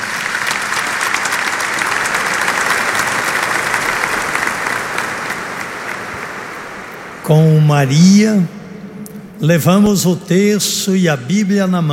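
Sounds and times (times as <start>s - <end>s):
audience applause: 0.0s - 7.3s
speech: 7.3s - 8.6s, 9.4s - 11.9s.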